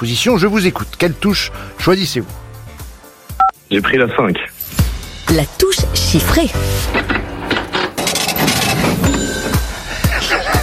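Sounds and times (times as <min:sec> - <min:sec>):
speech: 0:00.0 - 0:02.4, 0:03.7 - 0:07.2
cash register: 0:06.8 - 0:09.9
laughter: 0:09.7 - 0:10.6.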